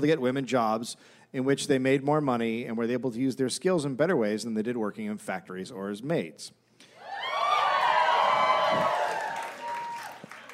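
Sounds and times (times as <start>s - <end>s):
speech: 0.0s - 6.6s, 8.7s - 9.0s
live audience cheering and whooping: 6.9s - 10.5s.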